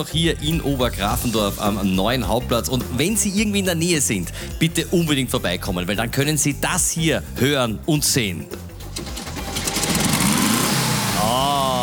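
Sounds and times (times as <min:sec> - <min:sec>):
speech: 0:00.0 - 0:09.1
light blue Volkswagen car engine idling: 0:08.8 - 0:11.8.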